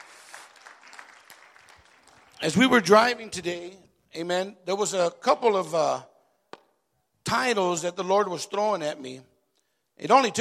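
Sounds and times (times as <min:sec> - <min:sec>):
audience applauding in a church: 0:00.0 - 0:02.6
speech: 0:02.4 - 0:06.1, 0:07.3 - 0:09.3, 0:10.0 - 0:10.4.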